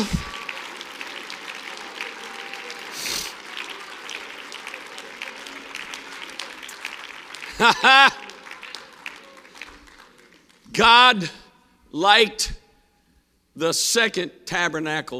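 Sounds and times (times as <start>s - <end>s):
audience clapping: 0.0s - 10.8s
laughter: 7.4s - 8.6s
speech: 7.6s - 8.2s, 10.8s - 12.6s, 13.6s - 15.1s.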